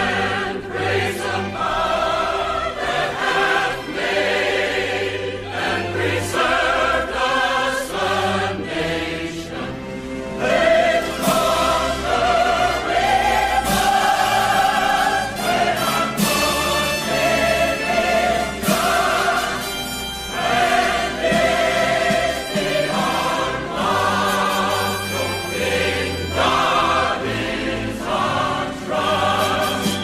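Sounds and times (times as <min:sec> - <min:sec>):
anthem music: 0:00.0 - 0:30.0.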